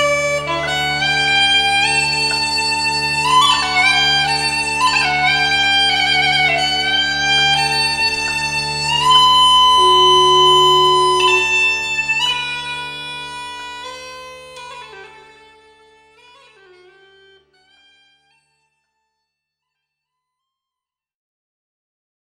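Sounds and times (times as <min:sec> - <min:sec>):
Irish uilleann pipes playing: 0:00.0 - 0:14.0.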